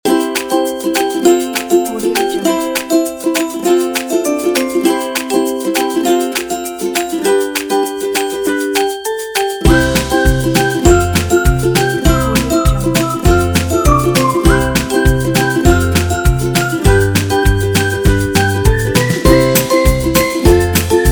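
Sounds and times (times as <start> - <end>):
upbeat happy logo music: 0.0 - 21.1.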